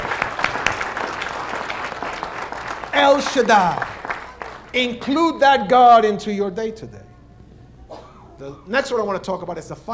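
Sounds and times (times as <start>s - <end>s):
room full of people applauding: 0.0s - 5.2s
speech: 3.0s - 4.0s, 4.7s - 7.1s, 8.4s - 9.9s.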